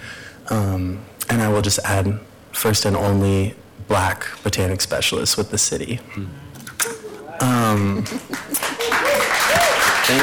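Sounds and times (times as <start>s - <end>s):
speech: 0.5s - 6.6s, 7.4s - 8.8s
audience clapping: 8.0s - 10.2s.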